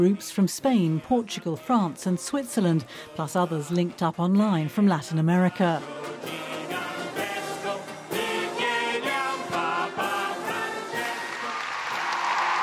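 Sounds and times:
speech: 0.0s - 6.4s
crowd singing: 0.0s - 11.8s
rhythmic clapping: 10.1s - 12.6s
crowd cheering: 11.0s - 12.6s.

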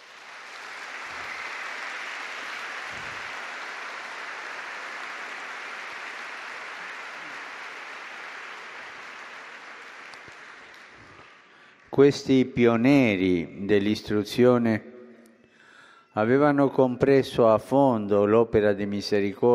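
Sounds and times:
sustained applause from a large audience: 0.0s - 12.0s
speech: 12.0s - 14.9s, 16.2s - 19.5s.

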